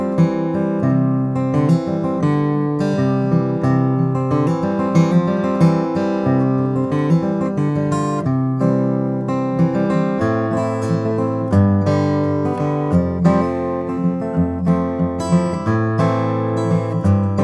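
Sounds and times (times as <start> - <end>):
1999 Froggy Bottom H 12 Deluxe Indian rosewood guitar: 0.0 - 17.4.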